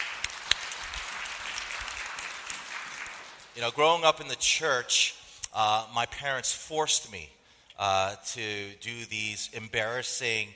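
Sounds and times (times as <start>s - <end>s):
audience clapping: 0.0s - 4.0s
speech: 3.6s - 10.5s.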